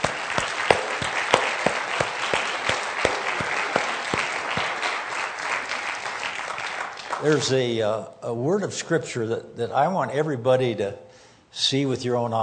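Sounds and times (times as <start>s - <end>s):
audience clapping: 0.0s - 7.7s
speech: 7.2s - 12.4s.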